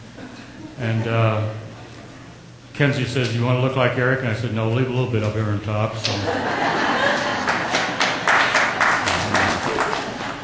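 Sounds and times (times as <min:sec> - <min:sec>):
speech: 0:00.8 - 0:01.6, 0:02.8 - 0:06.9
laughter: 0:06.1 - 0:10.4
audience applause: 0:07.0 - 0:10.4.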